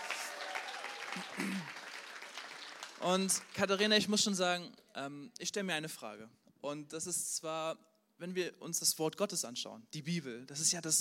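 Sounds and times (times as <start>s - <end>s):
person whooping: 0.0s - 1.8s
audience applause: 0.0s - 3.6s
speech: 3.0s - 10.9s.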